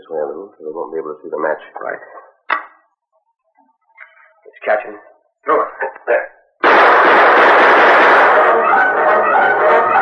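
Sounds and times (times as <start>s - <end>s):
speech: 0.1s - 2.3s, 4.6s - 6.4s
gunfire from outlaws in a radio drama: 6.6s - 10.0s.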